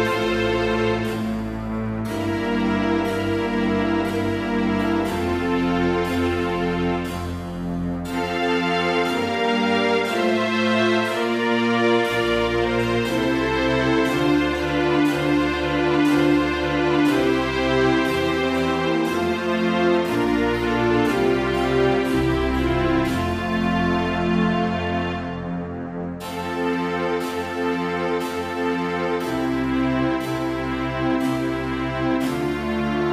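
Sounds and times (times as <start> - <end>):
strings playing in F major: 0.0 - 33.1.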